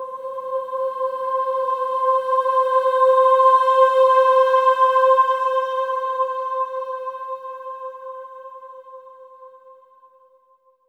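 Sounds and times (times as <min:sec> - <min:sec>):
choir singing swelling ahs on C5: 0:00.0 - 0:07.6.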